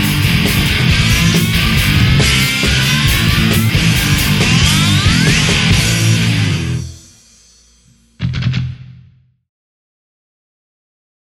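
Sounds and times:
drums: 0:00.0 - 0:09.3
voice: 0:01.1 - 0:07.1.

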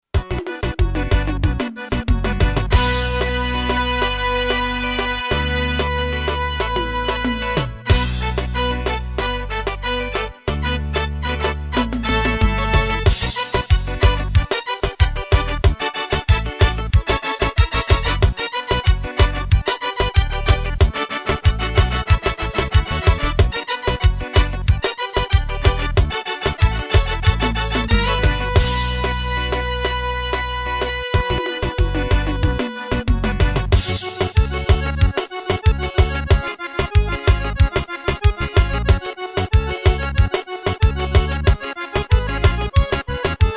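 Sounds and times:
Korg Pa500 pisadinha rhythm: 0:00.0 - 0:43.5.

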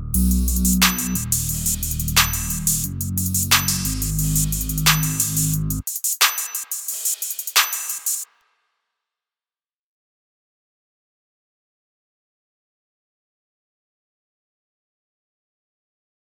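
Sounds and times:
instrumental beat: 0:00.1 - 0:08.3.

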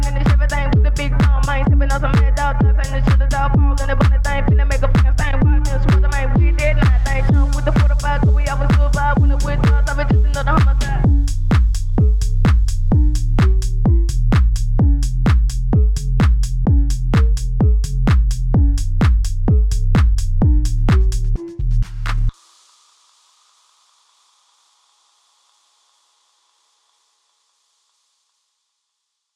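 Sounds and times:
phonk house music: 0:00.0 - 0:22.5.

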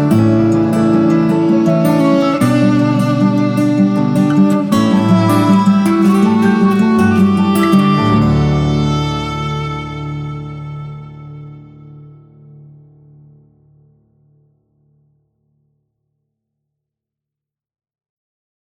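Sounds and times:
folk music: 0:00.0 - 0:12.7.

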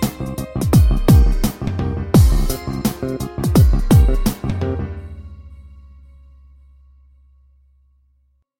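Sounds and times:
dub music: 0:00.0 - 0:06.0.

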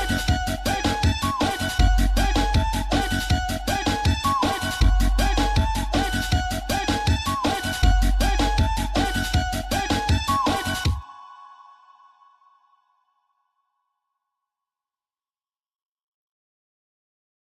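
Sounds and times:
arrocha funk music: 0:00.0 - 0:11.1.

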